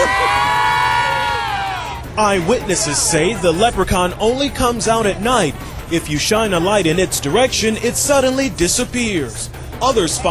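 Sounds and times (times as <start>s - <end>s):
crowd cheering and shouting yay: 0.0s - 5.6s
speech: 2.2s - 10.2s.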